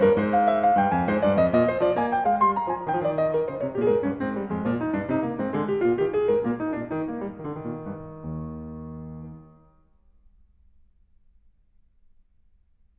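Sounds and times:
baroque dance piece: 0.0s - 9.8s.

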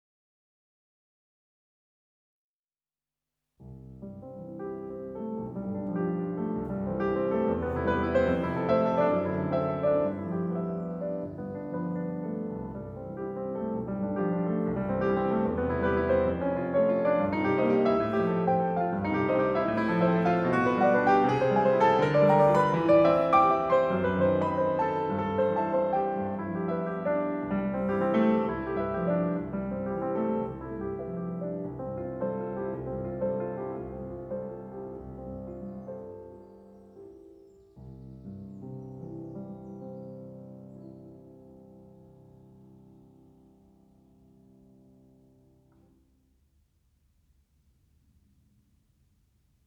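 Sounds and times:
piano prelude in C major: 3.6s - 46.1s.

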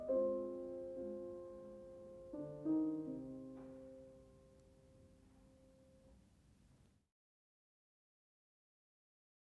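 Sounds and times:
piano mazurka in C minor: 0.0s - 6.1s.

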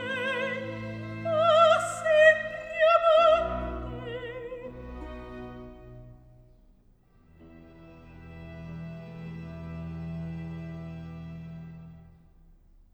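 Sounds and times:
recitative singing: 0.0s - 6.2s.

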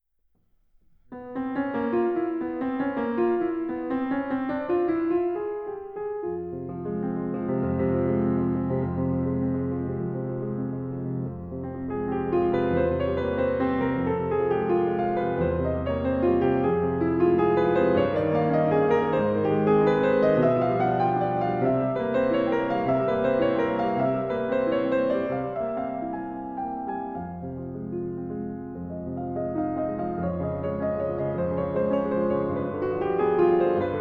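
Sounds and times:
piano etude in F minor: 0.6s - 33.9s.

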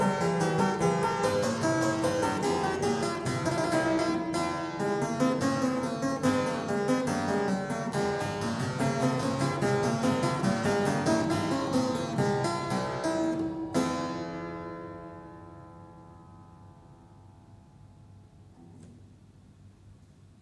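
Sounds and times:
prelude in F sharp minor: 0.0s - 16.1s.

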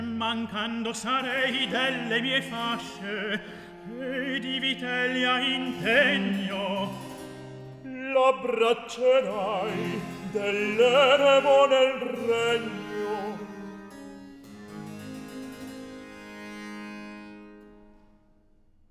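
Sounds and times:
recitative singing: 0.0s - 14.2s.

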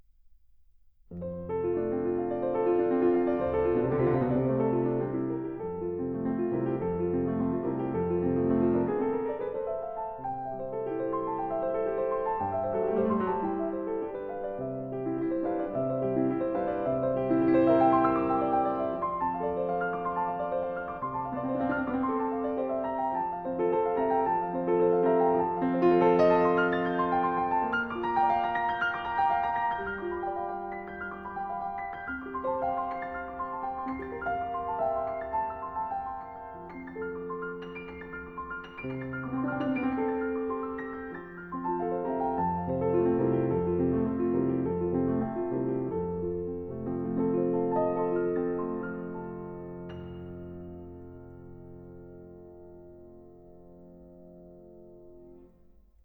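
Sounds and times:
piano prelude in F major: 1.0s - 56.0s.

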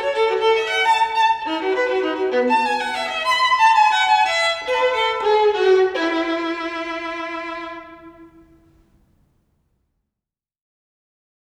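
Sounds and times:
solo violin playing a gigue in E major: 0.0s - 8.9s.

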